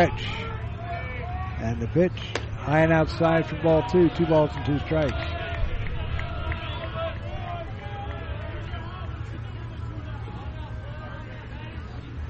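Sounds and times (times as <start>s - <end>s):
speech: 0.0s - 0.5s, 1.6s - 5.4s
ballpark crowd murmur: 0.0s - 12.2s.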